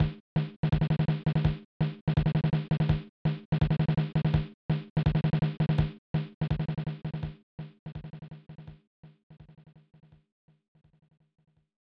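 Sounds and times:
drumbeat: 0.0 - 8.8.

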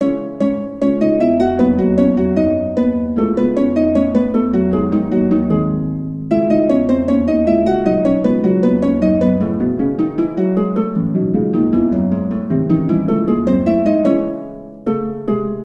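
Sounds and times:
harp: 0.0 - 15.6.

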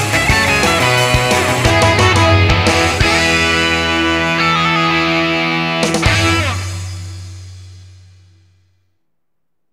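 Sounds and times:
rock background music: 0.0 - 6.7.

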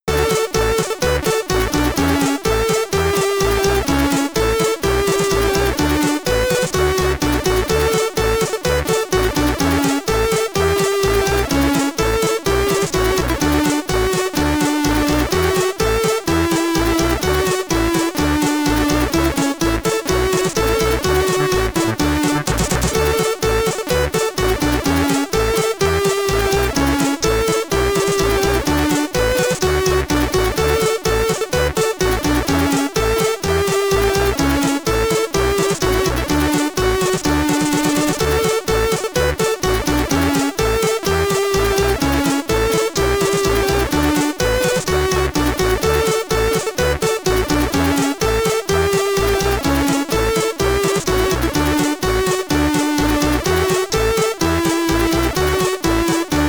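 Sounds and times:
Commodore 64 SID chiptune music in stereo: 0.0 - 56.4.

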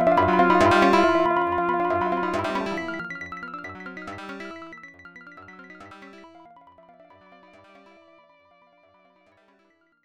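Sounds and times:
time out warning signal: 0.1 - 3.0.

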